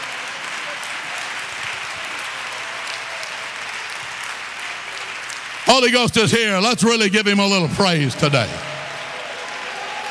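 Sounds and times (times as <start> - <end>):
audience clapping hands in praise: 0.0 - 10.0
speech: 5.7 - 8.7.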